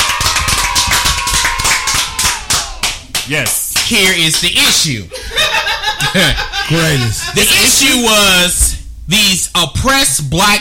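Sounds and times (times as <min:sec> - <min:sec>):
applause: 0:00.0 - 0:04.6
speech: 0:03.3 - 0:05.2, 0:06.0 - 0:10.5
laughter: 0:05.1 - 0:07.9.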